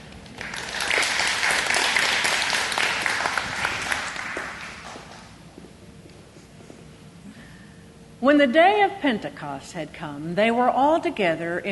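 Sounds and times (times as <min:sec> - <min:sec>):
audience applause: 0:00.2 - 0:05.3
speech: 0:08.2 - 0:11.6.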